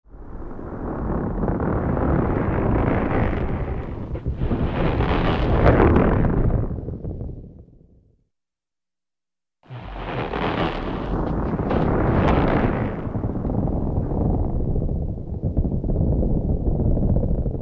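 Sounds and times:
earthquake rumble: 0.0s - 8.1s, 9.6s - 17.6s.

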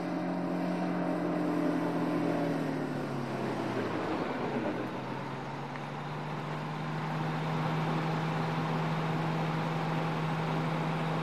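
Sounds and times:
bus exterior passing left to right and stopping: 0.1s - 11.2s.

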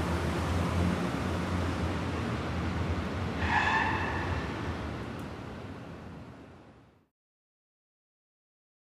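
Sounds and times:
city traffic in Georgetown D.C.: 0.0s - 7.1s
car screeching: 3.3s - 4.9s.

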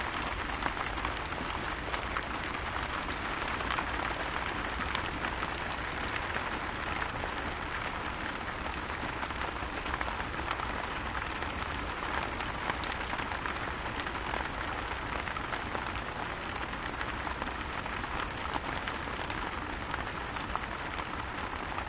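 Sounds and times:
light to medium rain with splatty raindrops: 0.0s - 21.8s.

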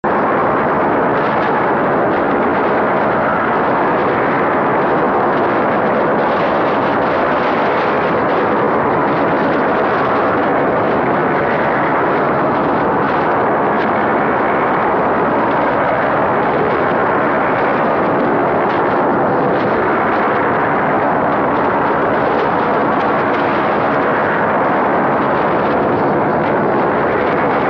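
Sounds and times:
ugly grinding static: 0.0s - 27.6s.

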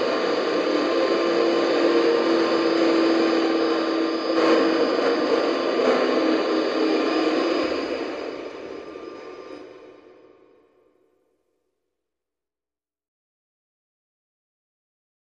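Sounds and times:
eerie communications radio static: 0.0s - 8.5s.

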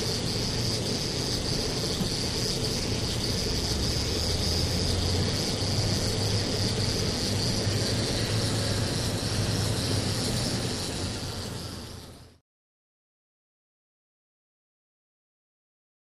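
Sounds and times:
ski lift motor: 0.0s - 12.4s.

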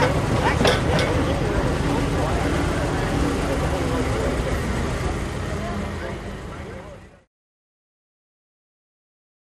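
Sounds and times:
motorboats at a boat race pit: 0.0s - 7.3s.

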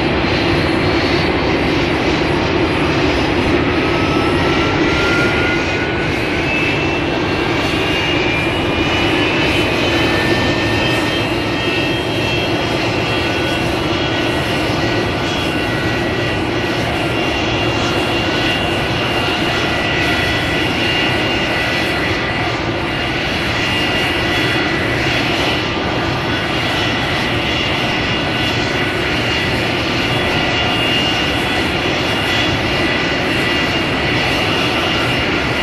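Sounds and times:
jet engine warming up and taxiing out at an airport: 0.0s - 35.6s.

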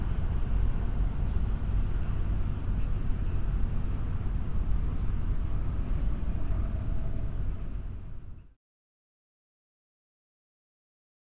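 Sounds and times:
loud subway ambience: 0.0s - 8.4s.

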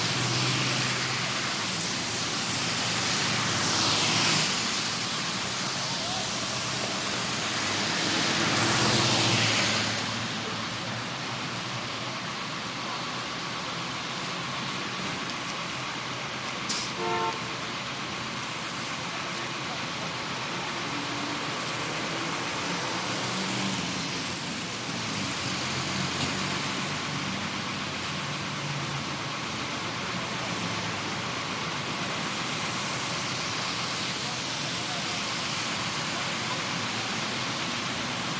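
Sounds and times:
heavy street traffic in rain: 0.0s - 38.3s
rain: 0.0s - 38.3s.

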